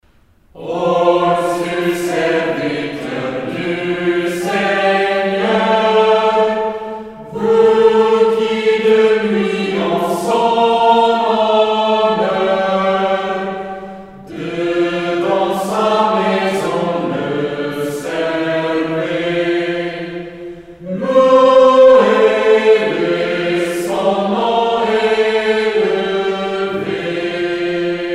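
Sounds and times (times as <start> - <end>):
metrical psalm singing in French: 0.4 - 28.1.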